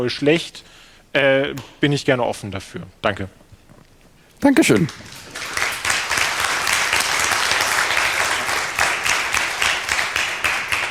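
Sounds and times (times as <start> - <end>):
speech: 0.0 - 3.4, 4.4 - 5.6
audience applause after a talk: 4.5 - 10.8.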